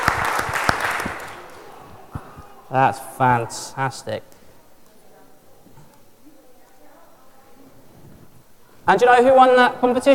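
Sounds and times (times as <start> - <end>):
round of applause: 0.0 - 2.0
speech: 2.7 - 4.4, 8.9 - 10.1.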